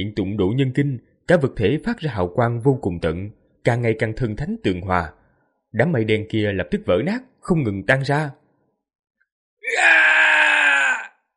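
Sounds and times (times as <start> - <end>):
speech: 0.0 - 8.4
two figures crying out loudly: 9.6 - 11.1.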